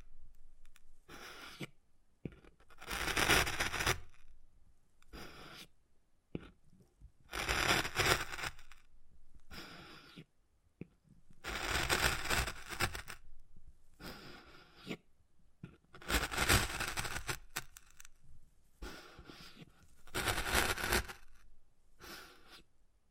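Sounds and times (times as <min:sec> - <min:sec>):
wood carving with tapping and scratching: 0:02.3 - 0:04.2, 0:07.3 - 0:08.7, 0:10.8 - 0:13.2, 0:15.7 - 0:18.1, 0:20.1 - 0:21.4.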